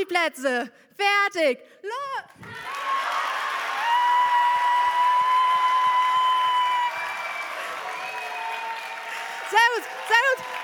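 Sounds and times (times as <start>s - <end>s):
speech: 0.0s - 3.0s, 9.5s - 10.6s
audience clapping and cheering: 2.3s - 10.6s.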